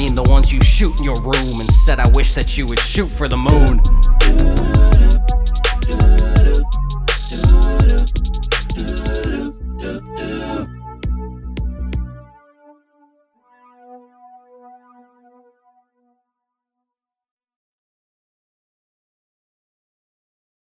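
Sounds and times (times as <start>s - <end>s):
four-bar dance music banger: 0.0s - 10.6s.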